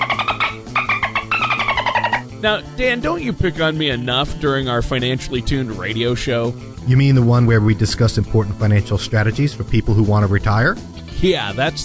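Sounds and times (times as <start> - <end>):
voice imitating dolphin chatter: 0.0 - 2.2
speech: 2.4 - 11.8.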